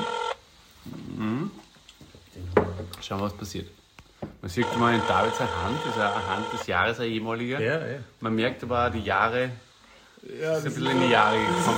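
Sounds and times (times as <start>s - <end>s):
Spanish telephone ringback tone: 0.0s - 0.4s, 4.6s - 6.6s, 10.8s - 11.7s
speech: 3.0s - 3.8s, 4.4s - 11.7s.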